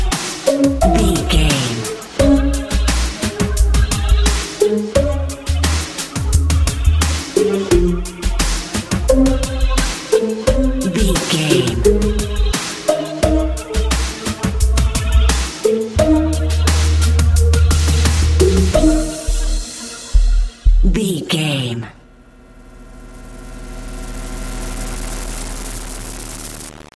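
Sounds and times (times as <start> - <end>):
happy warm modern pop music: 0.0 - 20.6.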